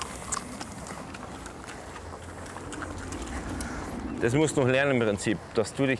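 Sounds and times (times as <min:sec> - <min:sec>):
horse hooves clopping: 0:00.0 - 0:05.6
rushing noise: 0:00.0 - 0:05.9
speech: 0:04.2 - 0:05.9.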